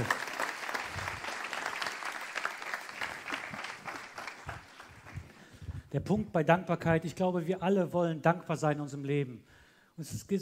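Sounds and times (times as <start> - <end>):
audience applause: 0.0 - 5.4
speech: 5.9 - 10.3.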